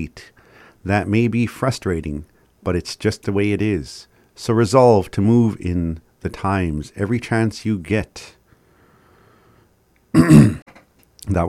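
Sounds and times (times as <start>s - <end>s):
speech: 0.0s - 8.4s, 10.1s - 10.6s, 11.3s - 11.4s
throat clearing by someone reading a horoscope aloud: 10.1s - 10.8s.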